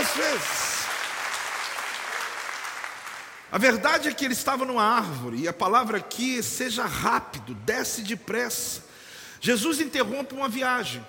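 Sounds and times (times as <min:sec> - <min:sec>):
audience applause: 0:00.0 - 0:03.5
speech: 0:03.5 - 0:11.0.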